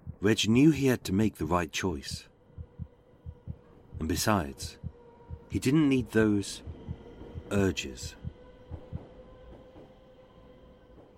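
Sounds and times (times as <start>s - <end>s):
speech: 0.2s - 2.3s, 4.0s - 4.8s, 5.5s - 6.7s, 7.5s - 8.2s
underground tube train rumbling past: 1.5s - 11.1s.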